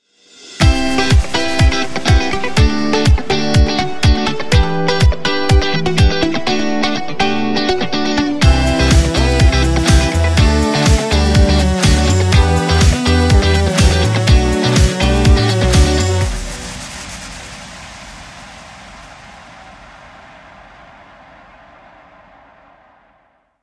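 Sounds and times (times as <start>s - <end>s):
energetic pop music: 0.6s - 17.6s.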